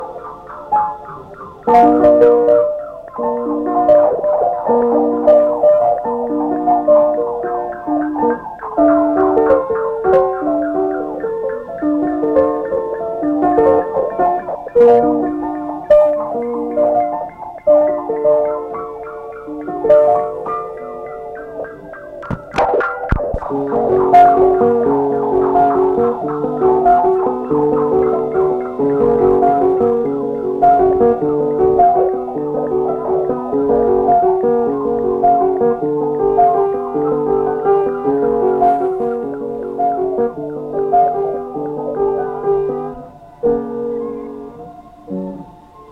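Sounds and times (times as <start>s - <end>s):
piano: 0.0s - 45.8s.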